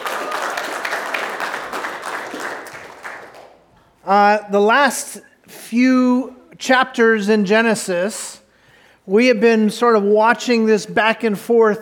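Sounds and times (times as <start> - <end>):
cheering: 0.0 - 3.4
crowd applauding: 0.0 - 3.7
speech: 4.1 - 8.4, 9.0 - 11.7.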